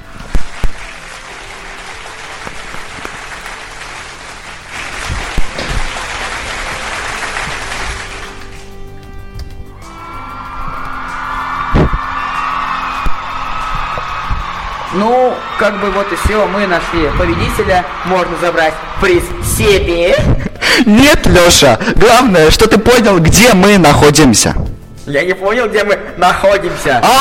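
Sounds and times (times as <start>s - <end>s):
applause sound effect: 0.0s - 8.7s, 9.9s - 20.0s
speech: 15.0s - 27.1s.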